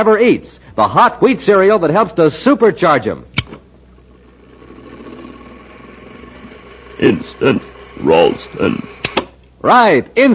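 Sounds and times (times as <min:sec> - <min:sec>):
speech: 0:00.0 - 0:03.3, 0:07.0 - 0:09.0, 0:09.6 - 0:10.3
robot machine with mechanical brain whirring and humming: 0:04.2 - 0:09.4.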